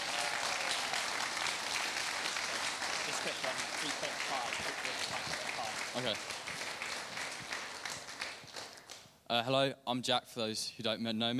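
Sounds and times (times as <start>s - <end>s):
audience applause: 0.0s - 9.0s
speech: 3.2s - 6.8s, 9.3s - 11.3s.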